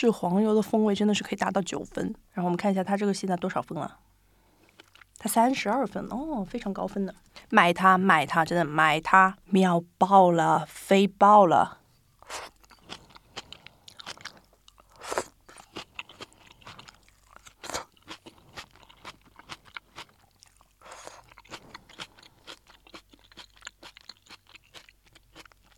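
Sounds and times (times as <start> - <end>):
speech: 0.0 - 4.1, 5.2 - 12.5
crunchy chewing of napa cabbage from a Japanese supermarket soup base: 4.5 - 5.2, 12.2 - 25.7.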